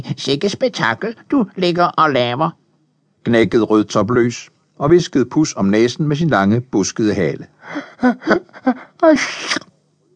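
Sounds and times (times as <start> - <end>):
speech: 0.0 - 2.6, 3.2 - 9.7
narrator imitating a sneeze: 9.2 - 9.7.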